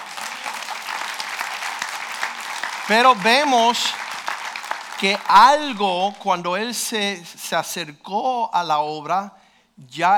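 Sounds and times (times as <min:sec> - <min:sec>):
audience clapping: 0:00.0 - 0:06.1
speech: 0:02.9 - 0:04.0, 0:05.0 - 0:10.1.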